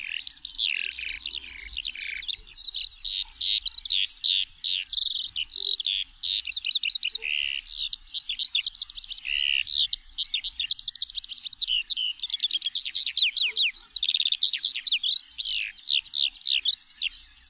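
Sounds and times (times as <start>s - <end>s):
Eurasian skylark warbling song: 0.0s - 17.4s.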